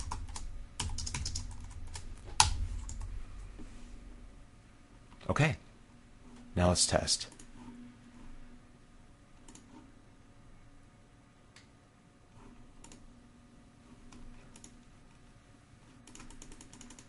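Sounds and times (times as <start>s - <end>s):
keystrokes on a computer keyboard typing a note: 0.0s - 3.1s, 9.4s - 9.8s, 12.8s - 13.0s, 14.1s - 14.8s, 16.0s - 17.0s
steady low hum: 0.0s - 16.2s
speech: 5.3s - 5.6s, 6.6s - 7.4s.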